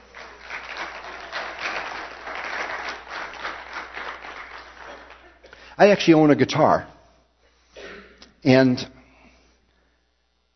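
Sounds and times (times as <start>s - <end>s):
crowd applause: 0.0s - 5.7s
speech: 5.8s - 6.9s, 8.4s - 9.0s.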